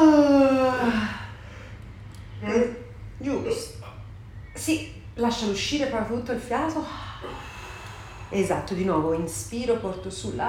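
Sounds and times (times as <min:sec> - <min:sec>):
person yawning: 0:00.0 - 0:01.4
speech: 0:04.7 - 0:07.1, 0:08.3 - 0:10.4.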